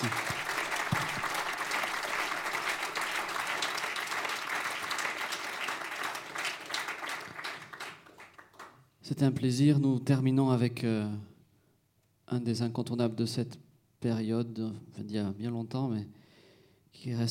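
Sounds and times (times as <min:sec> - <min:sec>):
warm audience applause: 0:00.0 - 0:08.8
speech: 0:09.1 - 0:11.3, 0:12.3 - 0:16.2, 0:16.9 - 0:17.2.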